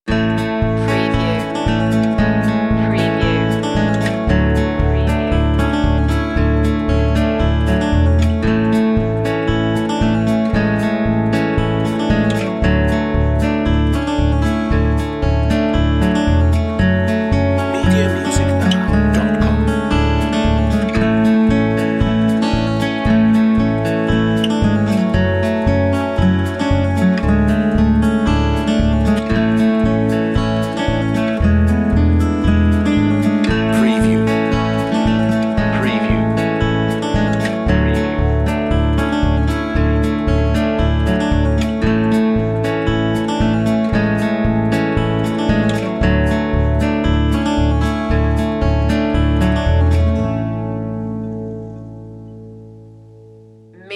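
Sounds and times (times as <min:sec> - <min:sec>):
homespun guitar: 0:00.0 - 0:53.9.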